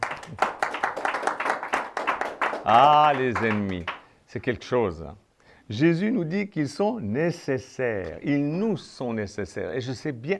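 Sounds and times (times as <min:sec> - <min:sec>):
audience clapping: 0:00.0 - 0:04.0
speech: 0:02.6 - 0:10.3.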